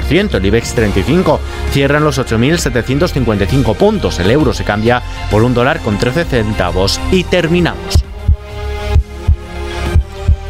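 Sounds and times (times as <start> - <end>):
speech: 0.1 - 8.1
healthy human heartbeat: 8.0 - 10.4.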